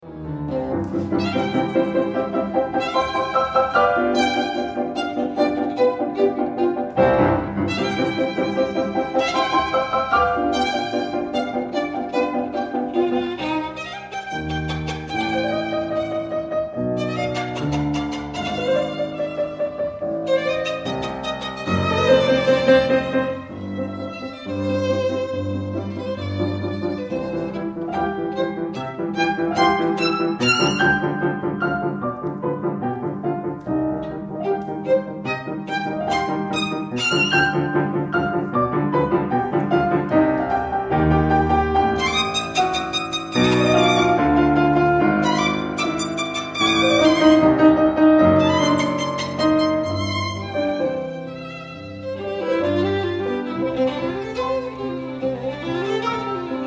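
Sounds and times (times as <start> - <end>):
violin and piano sonata: 0.0 - 56.6.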